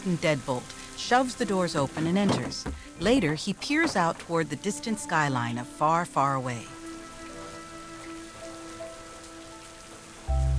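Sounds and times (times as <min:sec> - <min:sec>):
speech: 0:00.0 - 0:06.8
rain pattering: 0:00.0 - 0:10.5.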